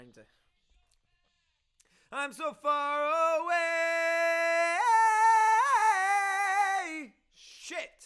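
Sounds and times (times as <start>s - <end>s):
chorus singing: 2.2s - 7.1s.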